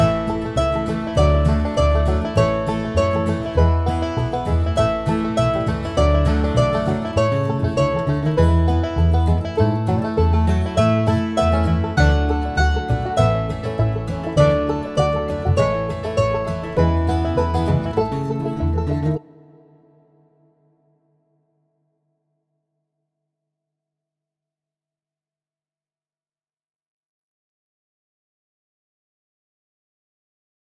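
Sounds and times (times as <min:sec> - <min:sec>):
mandolin: 0:00.0 - 0:20.7.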